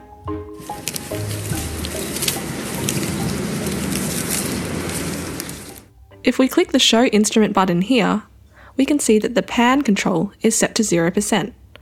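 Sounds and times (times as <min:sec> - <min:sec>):
leaves rustling: 0:00.3 - 0:05.9
speech: 0:06.2 - 0:11.6.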